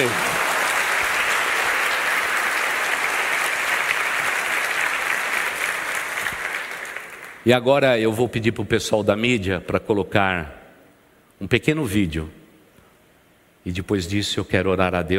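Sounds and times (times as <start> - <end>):
audience applause: 0.0 - 7.4
speech: 7.5 - 10.6, 11.4 - 12.4, 13.6 - 15.1.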